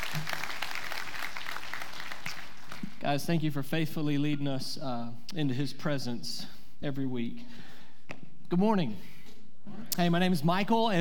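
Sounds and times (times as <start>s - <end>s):
church congregation applauding its worship team: 0.0s - 3.0s
speech: 3.0s - 7.7s, 8.5s - 9.1s, 9.7s - 10.9s.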